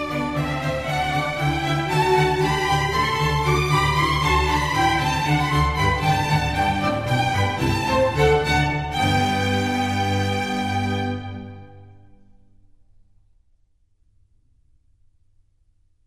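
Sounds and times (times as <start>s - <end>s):
concerto for strings in G major: 0.0s - 12.3s.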